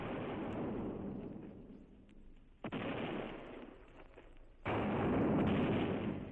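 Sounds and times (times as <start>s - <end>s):
cannons and rockets firing: 0.0s - 1.8s, 2.6s - 3.9s, 4.6s - 6.2s.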